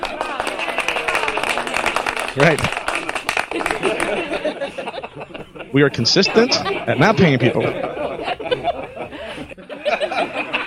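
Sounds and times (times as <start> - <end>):
scattered clapping: 0.0 - 4.4
canned crowd laughter: 0.0 - 10.6
speech: 2.4 - 2.8, 5.7 - 8.0.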